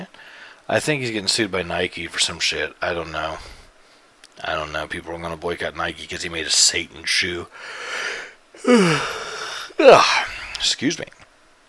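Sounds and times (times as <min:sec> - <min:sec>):
speech: 0:00.7 - 0:03.6, 0:04.4 - 0:11.2
person yawning: 0:08.6 - 0:10.5.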